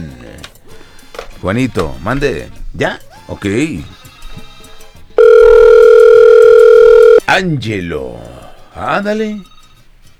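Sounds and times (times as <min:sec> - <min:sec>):
speech: 0:01.4 - 0:04.0, 0:07.3 - 0:09.5
outgoing telephone call ringing out: 0:05.2 - 0:07.2.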